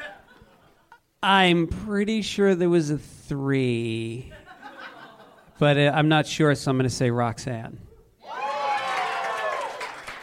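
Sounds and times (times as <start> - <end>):
laughter: 0.0 - 1.0, 4.3 - 5.6
speech: 1.2 - 4.4, 5.6 - 7.8
game-show studio audience cheering for a movie pick: 8.2 - 10.2.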